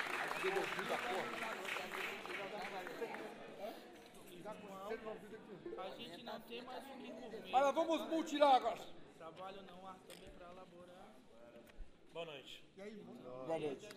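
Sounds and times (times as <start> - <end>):
audience applause: 0.0 - 3.4
speech: 0.4 - 2.1, 4.5 - 11.2, 12.1 - 13.9.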